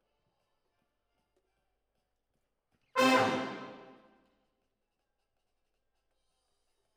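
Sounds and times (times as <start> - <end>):
horns playing: 3.0 - 4.0.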